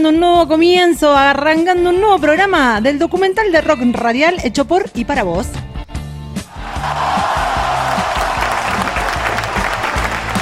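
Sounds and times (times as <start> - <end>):
speech: 0.0 - 5.8
applause: 6.7 - 10.4.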